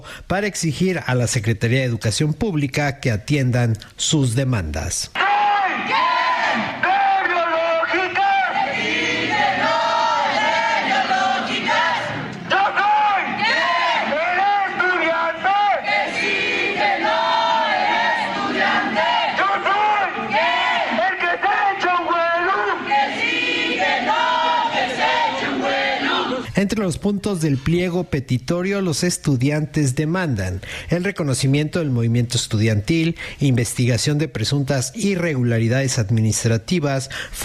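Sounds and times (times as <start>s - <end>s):
speech: 0.2s - 5.2s, 5.8s - 6.9s, 26.6s - 37.4s
student protest crowd chanting: 5.2s - 26.5s.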